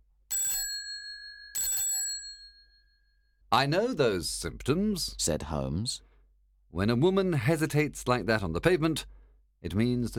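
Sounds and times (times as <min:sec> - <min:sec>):
doorbell ringing: 0:00.3 - 0:03.2
speech: 0:03.5 - 0:06.1, 0:06.7 - 0:10.1.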